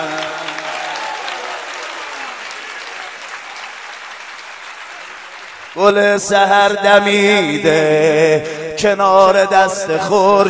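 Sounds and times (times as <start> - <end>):
crowd clapping along at a religious celebration marking the Eid of Imam Ali: 0.0 - 7.8
speech: 5.8 - 10.4.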